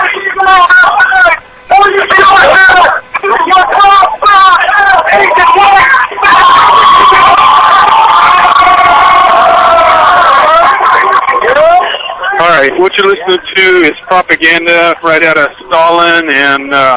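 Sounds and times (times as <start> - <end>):
crowd yelling and chanting indoors: 0.0 - 13.3
speech: 12.8 - 16.9.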